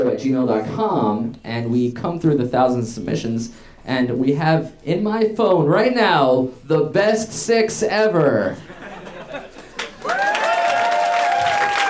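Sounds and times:
speech: 0:00.1 - 0:08.7
laughter: 0:08.6 - 0:10.1
live audience applause: 0:09.7 - 0:11.8.

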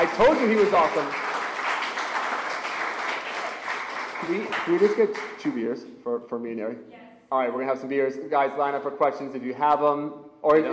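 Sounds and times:
audience applause: 0:00.0 - 0:05.5
speech: 0:00.1 - 0:01.2, 0:04.2 - 0:10.7.

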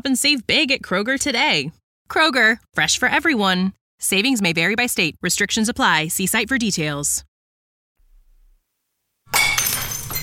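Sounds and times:
speech: 0:00.0 - 0:07.3
glass smashing inside a rage room event space: 0:09.3 - 0:10.2.

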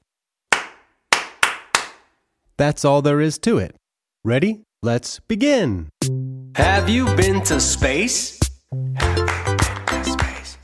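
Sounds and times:
hands clapping a rhythm: 0:00.5 - 0:02.1, 0:06.6 - 0:10.6
speech: 0:02.6 - 0:09.2.

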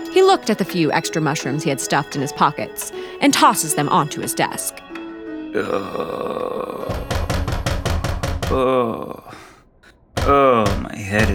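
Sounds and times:
speech: 0:00.2 - 0:07.1, 0:08.5 - 0:09.4, 0:10.2 - 0:11.3
pounding on a door: 0:06.9 - 0:08.6, 0:10.1 - 0:11.3.

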